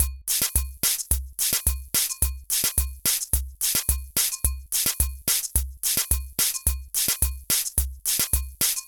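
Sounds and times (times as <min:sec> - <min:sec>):
mixed percussion: 0:00.0 - 0:08.8.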